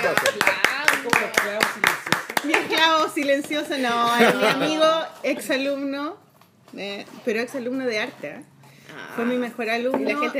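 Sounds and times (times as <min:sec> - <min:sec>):
applause: 0:00.0 - 0:03.3
speech: 0:03.1 - 0:08.5, 0:09.2 - 0:10.3
laughter: 0:03.8 - 0:05.0.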